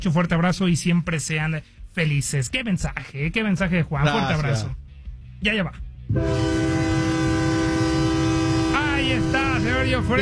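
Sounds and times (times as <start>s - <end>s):
speech: 0.0s - 4.8s, 5.4s - 6.7s, 9.1s - 10.1s
train whistle: 6.1s - 10.1s.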